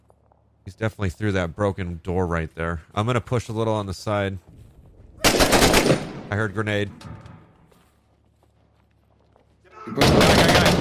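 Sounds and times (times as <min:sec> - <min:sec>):
speech: 0:00.7 - 0:04.5, 0:06.3 - 0:07.2
gunshot in a video game: 0:05.2 - 0:06.3, 0:09.9 - 0:10.8.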